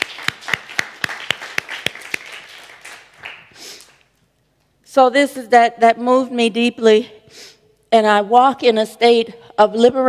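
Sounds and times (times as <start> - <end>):
audience clapping: 0.0 - 4.1
speech: 5.0 - 7.2, 7.9 - 10.0.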